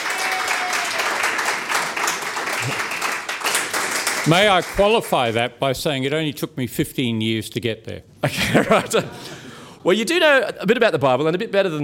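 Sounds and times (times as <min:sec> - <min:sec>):
audience applause: 0:00.0 - 0:05.2
speech: 0:04.2 - 0:11.8
laughter: 0:08.3 - 0:09.6.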